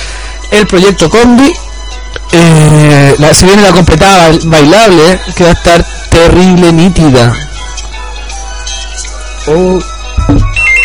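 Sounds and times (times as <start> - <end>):
low hum: 0.0 - 10.8
speech: 0.5 - 1.7, 2.3 - 7.5, 9.5 - 10.5
telephone ringtone chirping in high electronic tones: 10.2 - 10.8.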